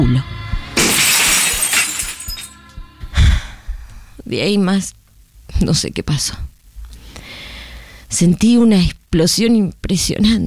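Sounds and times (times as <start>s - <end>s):
ashtray smashing a computer screen: 0.8s - 2.5s
speech: 4.3s - 6.5s, 8.1s - 10.4s.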